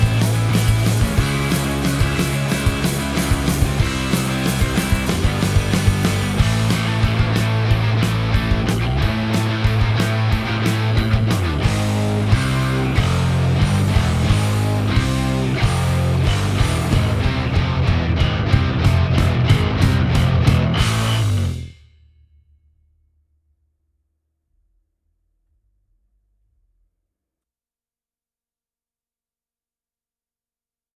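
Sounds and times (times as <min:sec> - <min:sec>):
instrumental mix: 0:00.0 - 0:21.8.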